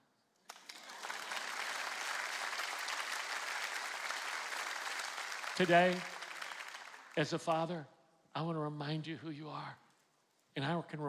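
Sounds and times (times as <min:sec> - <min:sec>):
audience applause: 0:00.5 - 0:07.5
speech: 0:05.6 - 0:06.1, 0:07.2 - 0:09.8, 0:10.6 - 0:11.0.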